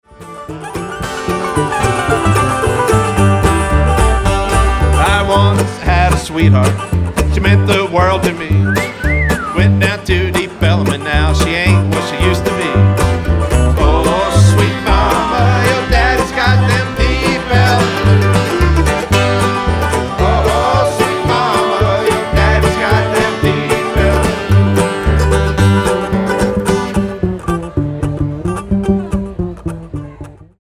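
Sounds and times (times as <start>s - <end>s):
blues song: 0.2s - 30.3s.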